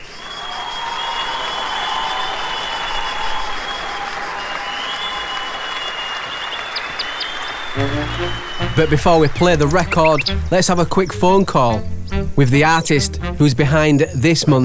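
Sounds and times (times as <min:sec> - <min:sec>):
audience cheering: 0:00.0 - 0:10.9
speech: 0:07.8 - 0:14.6.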